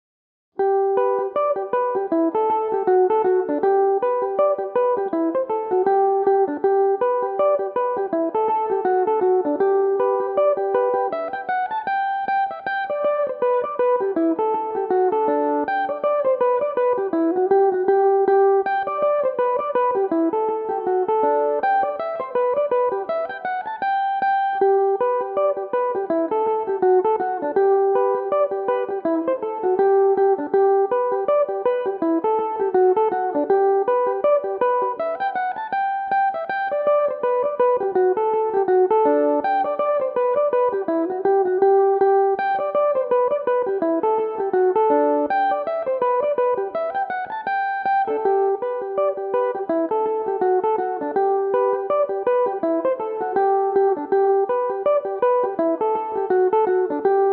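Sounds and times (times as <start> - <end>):
mandolin playing in G major: 0.6 - 57.3.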